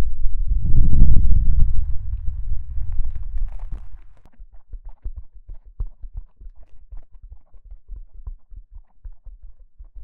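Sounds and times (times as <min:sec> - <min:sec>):
deep ear cupping bass rumbles: 0:00.0 - 0:06.5
soft low thumps and crackly taps: 0:02.1 - 0:10.0.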